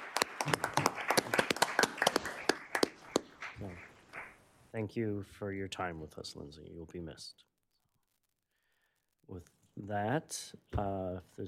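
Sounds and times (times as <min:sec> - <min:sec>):
audience applause: 0:00.0 - 0:04.4
speech: 0:04.8 - 0:07.5, 0:09.3 - 0:11.4.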